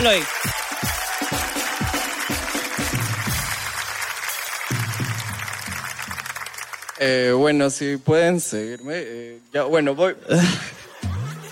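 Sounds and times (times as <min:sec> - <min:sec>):
speech: 0:00.0 - 0:00.6, 0:07.0 - 0:10.8
applause: 0:00.0 - 0:07.2.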